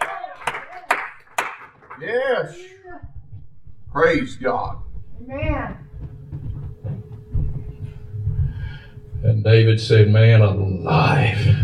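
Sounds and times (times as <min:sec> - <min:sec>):
audience hand clapping: 0:00.0 - 0:02.5
speech: 0:02.0 - 0:03.1, 0:03.9 - 0:05.8, 0:09.2 - 0:11.6.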